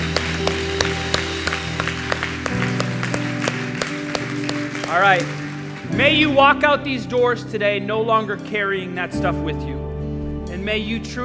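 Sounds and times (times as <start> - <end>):
audience applauding: 0.0 - 6.7
organ-like keyboard chords: 0.0 - 7.0
speech: 5.0 - 9.8, 10.6 - 11.2.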